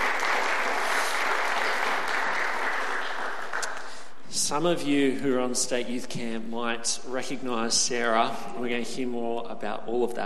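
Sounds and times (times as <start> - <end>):
people clapping: 0.0 - 4.1
speech: 4.4 - 10.2.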